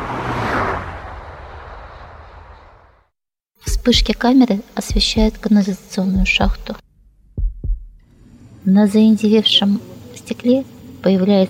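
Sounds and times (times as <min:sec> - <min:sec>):
cars speeding past on a street: 0:00.0 - 0:03.0
speech: 0:03.9 - 0:06.8, 0:08.7 - 0:11.4.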